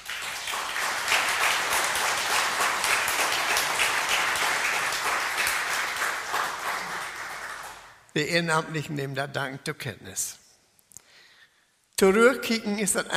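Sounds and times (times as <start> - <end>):
audience applause: 0.0 - 8.0
speech: 8.2 - 10.4, 12.0 - 13.1.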